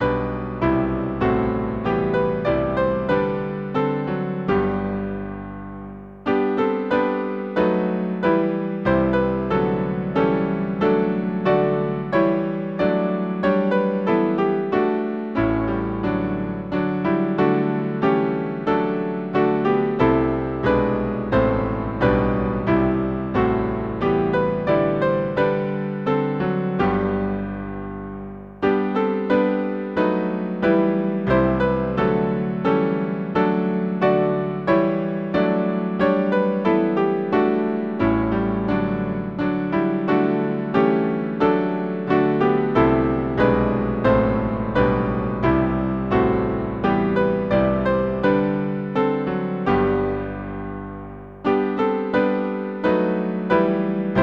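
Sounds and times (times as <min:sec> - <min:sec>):
hymn on piano: 0:00.0 - 0:54.2.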